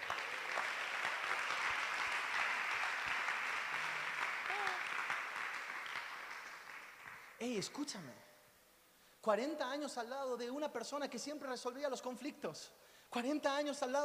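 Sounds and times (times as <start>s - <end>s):
applause: 0.0s - 7.6s
speech: 7.4s - 8.3s, 9.2s - 14.0s.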